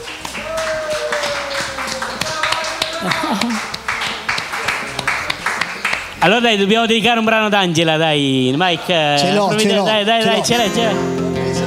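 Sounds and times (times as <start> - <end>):
laughter: 0.0 - 6.0, 9.2 - 11.6
applause for the staff: 0.0 - 6.3
speech: 3.0 - 3.8, 6.2 - 11.2.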